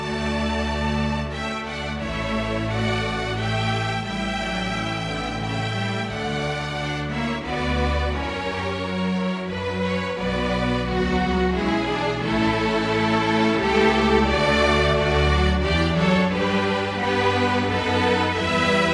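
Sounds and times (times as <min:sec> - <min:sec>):
string orchestra: 0:00.0 - 0:18.9.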